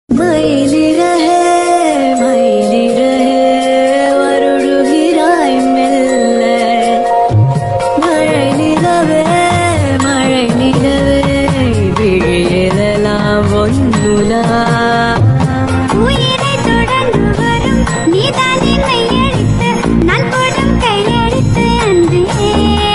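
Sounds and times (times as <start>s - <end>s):
Tamil romantic music: 0.1s - 22.9s.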